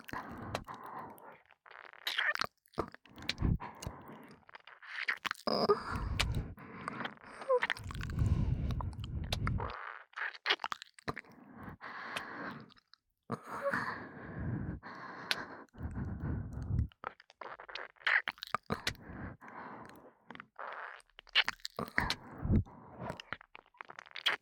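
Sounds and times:
breathy ASMR breathing in the right ear: 0:00.1 - 0:01.3, 0:03.2 - 0:04.4, 0:05.6 - 0:09.8, 0:11.4 - 0:12.7, 0:13.4 - 0:16.9, 0:18.7 - 0:20.1, 0:21.8 - 0:23.3
ASMR ear licking: 0:01.7 - 0:09.9, 0:15.2 - 0:19.2, 0:20.6 - 0:24.4.

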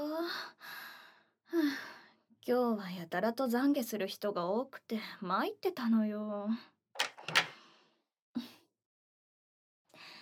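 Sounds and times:
speech: 0:02.4 - 0:06.7
door being unlocked: 0:07.0 - 0:07.6.

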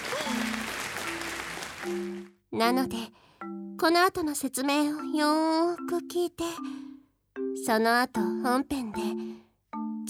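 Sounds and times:
dense applause sound effect: 0:00.0 - 0:02.4
speech: 0:01.9 - 0:06.8, 0:07.6 - 0:09.4.

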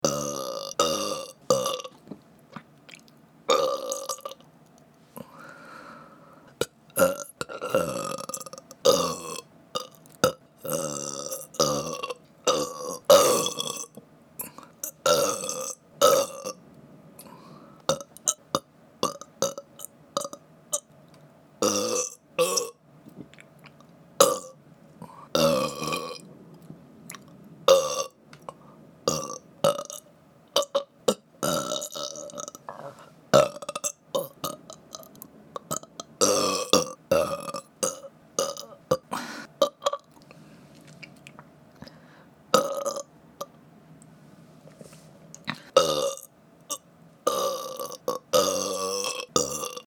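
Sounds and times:
burping compilation: 0:00.0 - 0:02.0, 0:02.6 - 0:04.4, 0:07.0 - 0:16.6, 0:17.9 - 0:20.4, 0:21.6 - 0:22.8, 0:24.2 - 0:26.2, 0:27.1 - 0:40.2, 0:42.5 - 0:43.6, 0:45.4 - 0:49.8.

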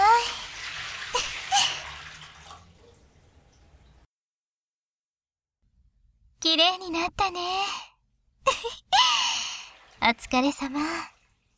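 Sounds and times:
water rinsing foam off a body: 0:00.0 - 0:03.2, 0:09.4 - 0:11.5
speech: 0:06.5 - 0:09.3, 0:10.0 - 0:11.1.

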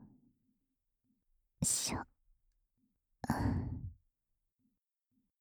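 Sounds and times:
breathing only: 0:01.6 - 0:02.0, 0:03.3 - 0:04.0
boosted whispering: 0:01.6 - 0:02.1, 0:03.3 - 0:04.0.

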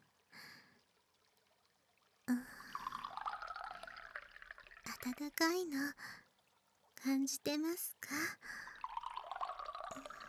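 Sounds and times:
hot water poured into a vessel: 0:02.3 - 0:05.2, 0:08.5 - 0:10.2
speech: 0:05.0 - 0:06.2, 0:07.0 - 0:08.7.

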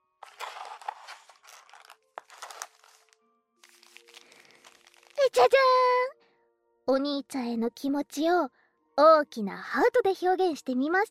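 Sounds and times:
crinkling and crunching of homemade sweets being eaten: 0:00.2 - 0:05.6
speech: 0:05.3 - 0:06.2, 0:06.9 - 0:11.0.

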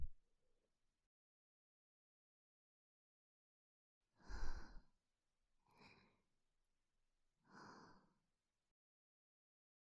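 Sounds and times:
soft angelic breathing: 0:04.2 - 0:04.8, 0:05.7 - 0:06.1, 0:07.5 - 0:08.1.

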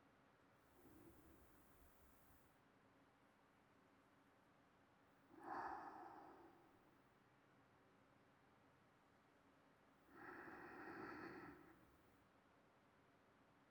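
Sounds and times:
sleeping breathing: 0:05.4 - 0:06.8, 0:10.2 - 0:11.9.

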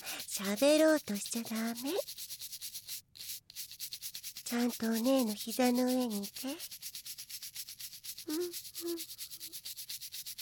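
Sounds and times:
rubbing and polishing strokes in an ASMR roleplay: 0:00.0 - 0:10.4
speech: 0:00.4 - 0:02.2, 0:04.5 - 0:06.8, 0:08.3 - 0:09.1
short low hummed vocal tones: 0:08.3 - 0:09.0.

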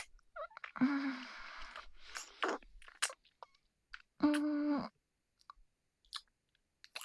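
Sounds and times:
kissing: 0:00.0 - 0:03.3, 0:04.2 - 0:04.9.

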